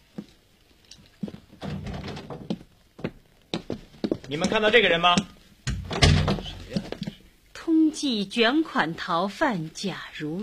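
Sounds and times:
door being opened: 1.6s - 2.6s, 5.7s - 7.2s
speech: 4.3s - 5.3s, 8.0s - 10.4s
dull thuds: 5.2s - 7.2s.

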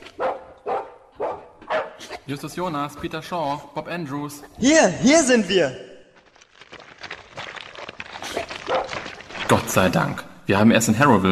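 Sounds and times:
dog barking: 0.0s - 2.3s, 8.6s - 9.1s
speech: 2.3s - 5.9s, 9.7s - 11.2s.

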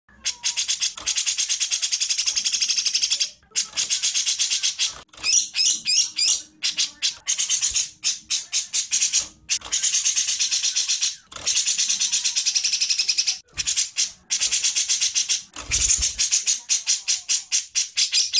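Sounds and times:
songbird masteran song with squeaky chattering and sharp chirps: 0.1s - 18.3s.

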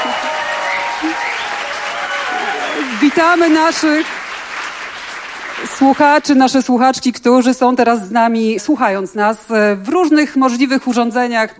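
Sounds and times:
studio audience applause in a Polish radio studio: 0.0s - 6.4s
speech: 3.2s - 4.2s, 5.8s - 11.5s.

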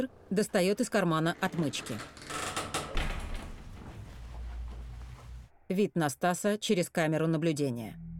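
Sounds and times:
speech: 0.0s - 2.2s, 5.7s - 8.1s
stairwell landing door swinging open: 1.2s - 4.1s.

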